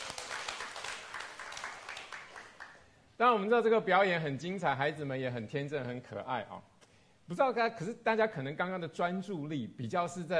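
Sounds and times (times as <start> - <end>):
audience applause: 0.0 - 2.8
speech: 3.2 - 6.7, 7.3 - 10.3.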